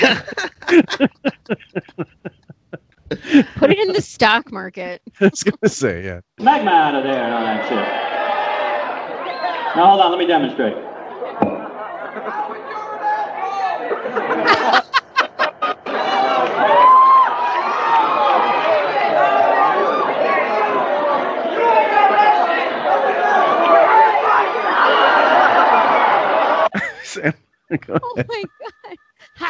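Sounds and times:
speech: 0.0 - 2.2, 3.1 - 8.1, 9.7 - 11.6, 27.2 - 29.4
laughter: 0.0 - 4.3, 5.2 - 8.0, 8.9 - 29.4
rowdy crowd noise at a concert: 5.3 - 27.2.

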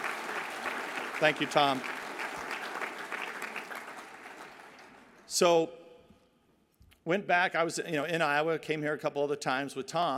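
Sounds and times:
audience applause: 0.0 - 5.1
speech: 1.2 - 1.9, 5.3 - 5.8, 7.1 - 10.1.

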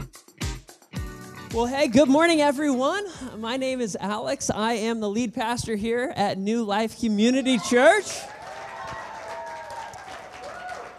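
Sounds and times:
speech: 1.5 - 8.4
church audience clapping: 7.7 - 10.9.

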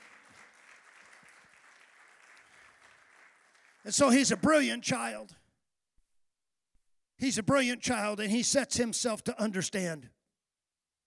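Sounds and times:
audience clapping hands: 0.0 - 5.1
speech: 3.8 - 5.4, 7.2 - 10.2.

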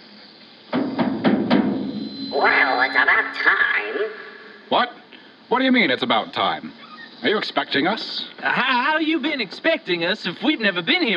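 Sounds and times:
knocking on a door: 0.7 - 1.7
speech: 2.4 - 11.1.

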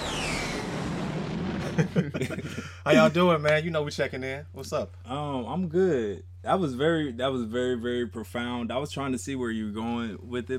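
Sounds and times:
jet airplane sound effect: 0.0 - 1.9
laughter: 1.6 - 3.2
speech: 1.8 - 10.5.

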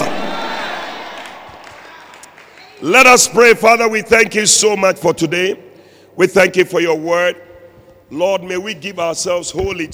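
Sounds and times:
audience clapping and shouting praise: 0.0 - 3.4
speech: 2.8 - 7.5, 8.1 - 9.9.

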